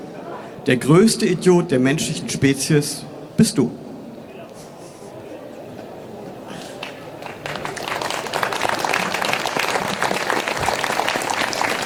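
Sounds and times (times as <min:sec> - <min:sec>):
speech: 0:00.7 - 0:03.8
audience clapping: 0:06.6 - 0:11.8.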